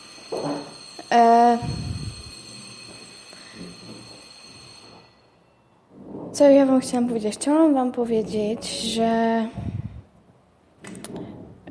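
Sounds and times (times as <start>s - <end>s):
electronic school bell signalling the break: 0.0s - 5.8s
speech: 1.1s - 1.8s, 6.4s - 9.7s.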